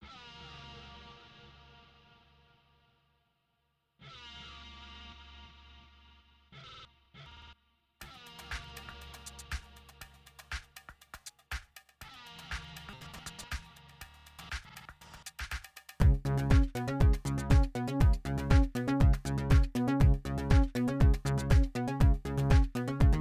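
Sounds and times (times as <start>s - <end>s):
electronic music: 8.0s - 10.5s, 12.1s - 15.2s, 16.0s - 23.2s.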